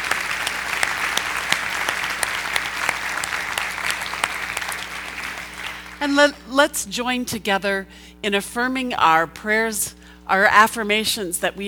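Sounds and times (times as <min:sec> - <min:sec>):
audience applauding: 0:00.0 - 0:06.1
speech: 0:06.0 - 0:11.6.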